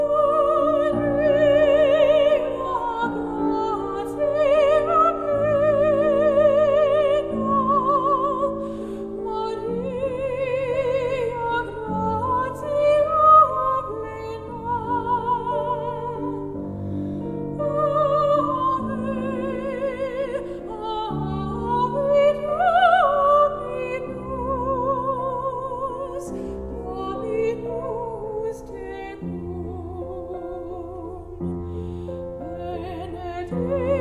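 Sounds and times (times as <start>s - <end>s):
piano: 0.0s - 34.0s
soprano singing: 0.0s - 34.0s.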